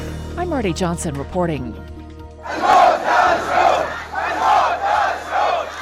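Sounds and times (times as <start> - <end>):
speech: 0.5 - 3.3
crowd of protesters chanting in Al-Awamiya: 2.4 - 5.8.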